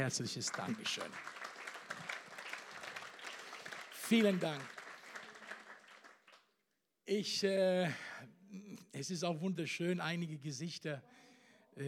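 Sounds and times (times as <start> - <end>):
speech: 0.0 - 1.5, 4.1 - 4.8, 7.1 - 11.8
audience applause: 0.0 - 6.5.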